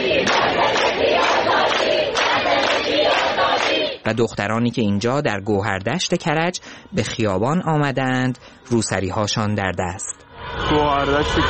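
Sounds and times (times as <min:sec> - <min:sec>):
protesters chanting slogans in Ekbatan, Tehran: 0:00.0 - 0:04.1
speech: 0:04.1 - 0:11.4.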